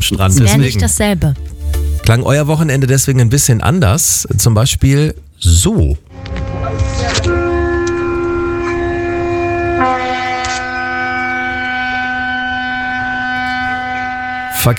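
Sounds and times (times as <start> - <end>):
speech: 0.0 - 1.5, 2.1 - 6.4
ship horn at a harbour: 6.1 - 14.7.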